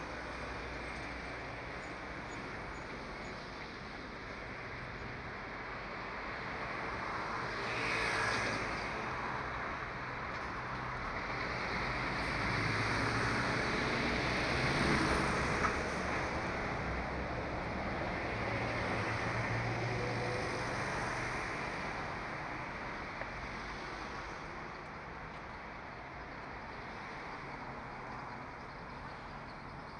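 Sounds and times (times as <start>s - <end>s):
busy street: 0.0s - 29.9s.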